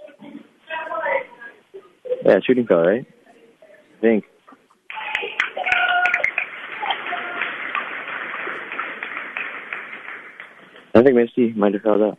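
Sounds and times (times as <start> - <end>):
speech: 2.3 - 3.2, 4.0 - 4.3, 11.0 - 12.1
crowd clapping at a basketball game: 4.9 - 11.2.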